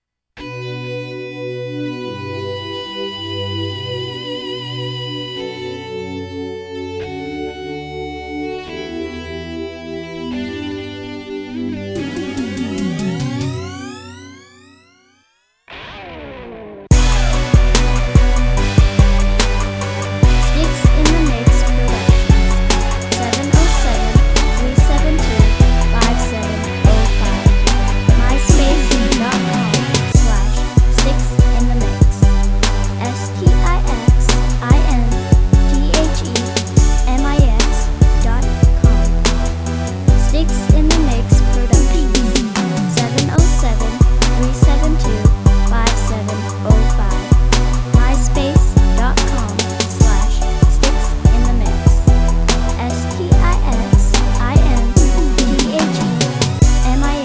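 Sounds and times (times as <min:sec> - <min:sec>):
metal music: 0:15.8 - 0:57.2.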